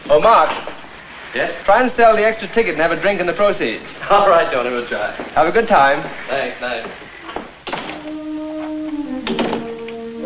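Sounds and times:
speech: 0.1s - 0.6s, 1.3s - 7.0s
door of a flat closing: 6.9s - 10.2s.

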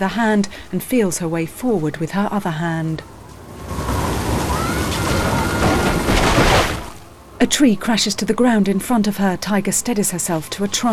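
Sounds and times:
speech: 0.0s - 3.1s, 7.4s - 10.9s
heavy rain: 3.0s - 7.4s.

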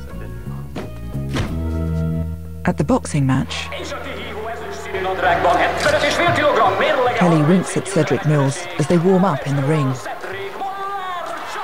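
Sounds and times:
car boot slammed shut: 0.8s - 1.8s
speech: 2.6s - 4.1s, 5.1s - 10.2s
laughter: 3.5s - 11.6s.

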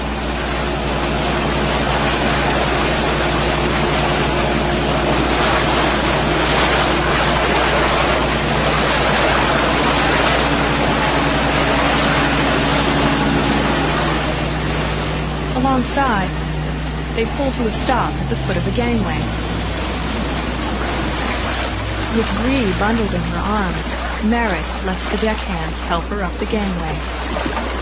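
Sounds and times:
inflatable dinghy motors crossing open water toward an icebreaker: 0.0s - 27.8s
rushing water: 0.0s - 27.8s
speech: 15.8s - 16.4s, 17.2s - 19.4s, 22.2s - 27.8s.

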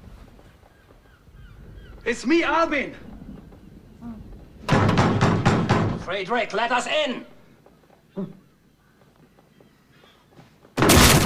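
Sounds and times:
speech: 2.0s - 3.1s, 6.1s - 7.3s, 8.2s - 8.4s
door being broken down: 4.7s - 6.1s, 10.8s - 11.2s.

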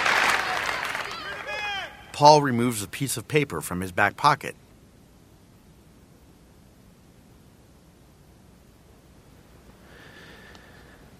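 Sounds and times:
applause from many hands: 0.0s - 1.8s
speech: 2.2s - 4.6s.

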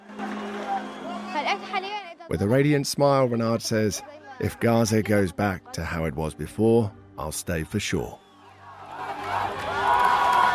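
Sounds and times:
ecstatic crowds cheering and shouting on the streets of Gaza: 0.0s - 2.0s, 8.4s - 10.5s
speech: 1.5s - 8.2s.

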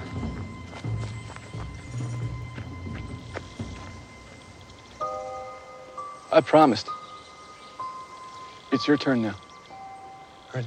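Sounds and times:
footsteps running through woods: 0.0s - 4.4s
speech: 6.4s - 7.0s, 8.8s - 9.4s.

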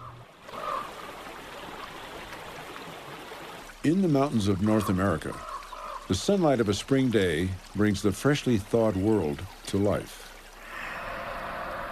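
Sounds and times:
water rushing downhill over rocks in a stream: 0.0s - 11.9s
speech: 3.8s - 5.5s, 6.1s - 10.3s.

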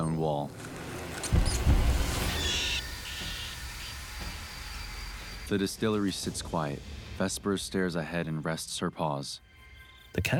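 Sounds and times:
speech: 0.2s - 0.7s, 5.5s - 9.5s, 10.1s - 10.3s
mouse squeaking: 1.4s - 4.0s.

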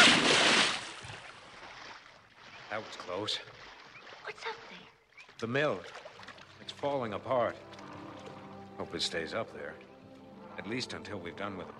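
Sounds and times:
stalactite splashing into the water beside a boat: 0.0s - 4.8s, 5.7s - 6.7s
speech: 2.7s - 7.7s, 8.8s - 9.9s, 10.6s - 11.7s.

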